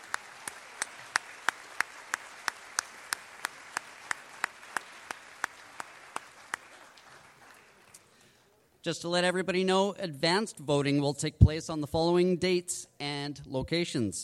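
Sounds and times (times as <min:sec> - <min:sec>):
steady sparse audience hand claps: 0:00.0 - 0:08.2
speech: 0:08.8 - 0:14.2.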